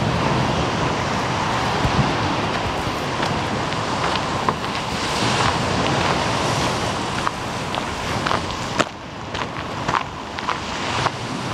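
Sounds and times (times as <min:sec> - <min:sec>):
waves washing along the Omø coastline: 0:00.0 - 0:11.5.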